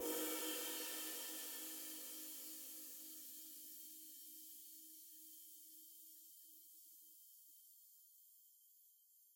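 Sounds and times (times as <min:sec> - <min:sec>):
cymbal: 0:00.0 - 0:05.4.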